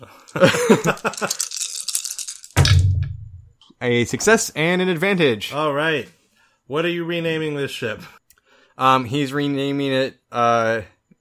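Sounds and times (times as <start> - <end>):
speech: 0.0 - 1.6, 3.8 - 8.2, 8.8 - 11.2
dice being rolled: 0.3 - 3.5.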